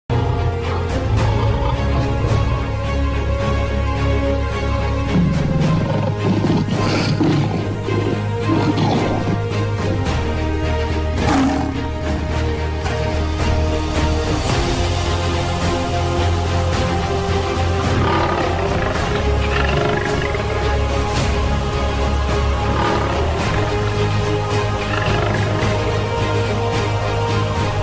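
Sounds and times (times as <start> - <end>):
uplifting epic ringtone music: 0.1 - 27.8
lion roar: 0.2 - 10.3, 11.1 - 12.3, 16.7 - 27.1.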